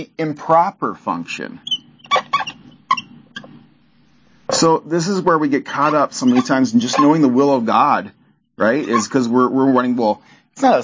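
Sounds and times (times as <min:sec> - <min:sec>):
speech: 0:00.0 - 0:01.8, 0:04.6 - 0:10.8
squeaky marker writing on board: 0:01.6 - 0:03.7, 0:05.7 - 0:07.6, 0:08.6 - 0:09.3.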